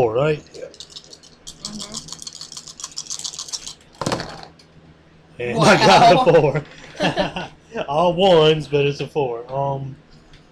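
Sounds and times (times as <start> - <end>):
speech: 0.0 - 0.9, 5.4 - 10.0
rolling dice: 0.7 - 4.6
laughter: 5.5 - 7.9.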